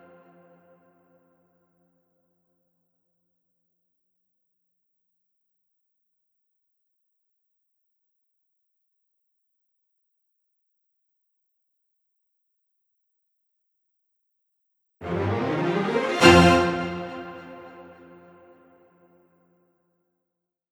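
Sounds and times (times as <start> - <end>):
80s synth strings chords: 15.0 - 18.5.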